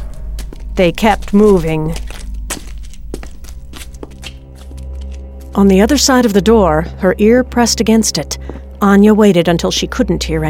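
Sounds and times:
footsteps: 0.0 - 6.4, 8.4 - 8.7
speech: 0.8 - 2.1, 5.6 - 10.4.

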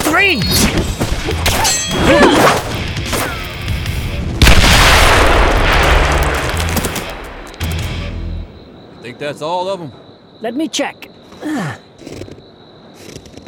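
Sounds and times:
speech: 0.2 - 2.8, 9.2 - 11.8
satchel charges exploding in the snow: 4.1 - 7.6.

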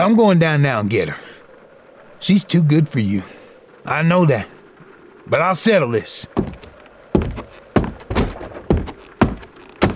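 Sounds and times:
speech: 0.0 - 1.3, 2.2 - 4.6, 5.3 - 6.6
cellar door opening: 6.4 - 9.9.

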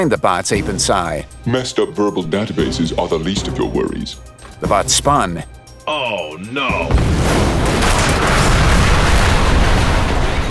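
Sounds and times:
speech: 0.0 - 7.4
missile explosions with deep rumble: 6.9 - 10.4.

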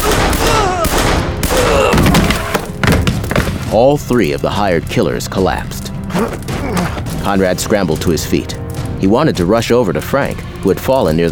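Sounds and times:
gunfire from gunmen firing down from a balcony railing: 0.0 - 3.8
speech: 3.7 - 6.5, 7.2 - 11.3.

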